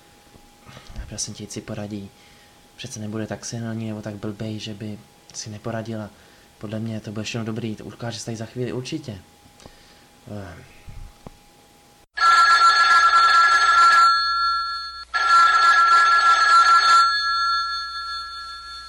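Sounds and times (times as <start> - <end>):
speech: 1.1 - 9.4, 10.3 - 10.8
doorbell ringing: 12.2 - 18.8.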